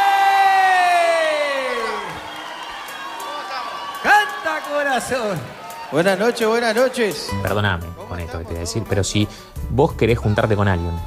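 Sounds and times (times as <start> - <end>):
audience applause and cheering: 0.0 - 11.0
speech: 5.0 - 11.0.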